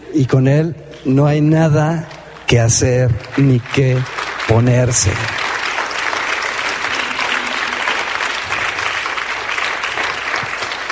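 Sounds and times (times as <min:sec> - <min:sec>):
speech: 0:00.1 - 0:05.4
audience applauding: 0:02.6 - 0:10.9.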